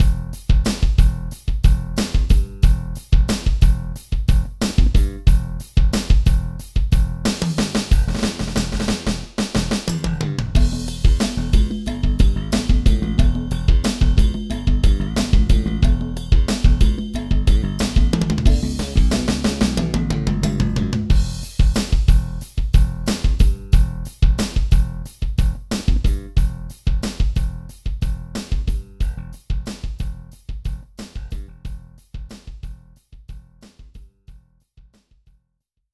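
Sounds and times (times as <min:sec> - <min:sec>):
SR18 drum machine rock beat: 0:00.0 - 0:35.2.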